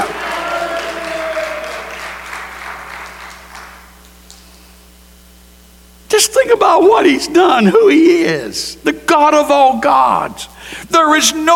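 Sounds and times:
audience clapping hands: 0.0s - 4.6s
speech: 6.2s - 11.5s.

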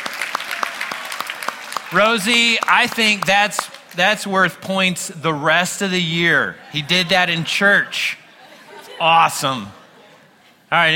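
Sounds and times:
audience applause: 0.0s - 4.0s
speech: 1.9s - 8.2s, 9.0s - 9.8s, 10.7s - 10.9s
laughter: 6.0s - 10.9s.

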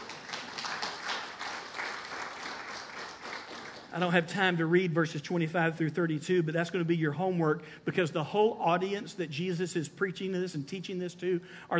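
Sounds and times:
church congregation applauding: 0.0s - 4.2s
speech: 3.9s - 11.7s.

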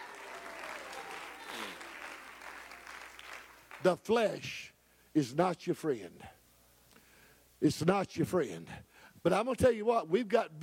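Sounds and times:
audience applause: 0.0s - 3.9s
speech: 3.8s - 6.4s, 7.6s - 10.6s.

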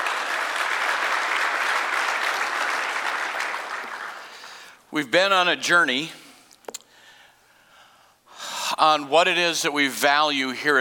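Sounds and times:
congregation clapping hands at a Sunday morning church service: 0.0s - 4.8s
speech: 4.9s - 6.2s, 8.8s - 10.7s.

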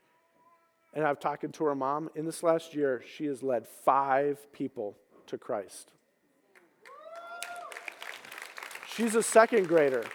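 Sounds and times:
speech: 0.9s - 6.0s, 9.0s - 10.1s
audience applause: 6.8s - 10.1s
person cheering: 6.9s - 7.9s.

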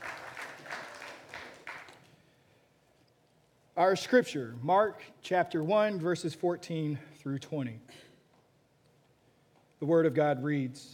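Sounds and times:
audience applause: 0.0s - 2.1s
speech: 3.8s - 8.1s, 9.8s - 10.9s.

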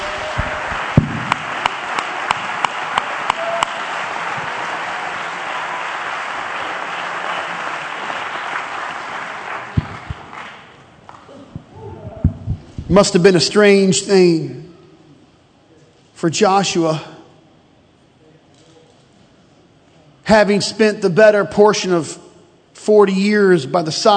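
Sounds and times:
audience clapping hands: 0.0s - 11.6s
speech: 13.0s - 14.7s, 16.2s - 17.1s, 20.3s - 22.2s, 22.8s - 24.1s.

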